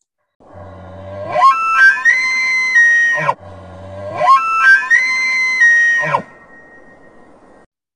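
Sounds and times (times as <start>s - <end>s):
elk bugle: 1.1s - 7.0s.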